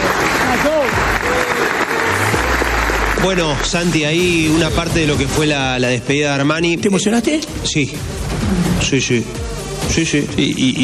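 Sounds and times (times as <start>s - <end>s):
large crowd applauding: 0.0s - 4.6s
speech: 3.2s - 10.8s.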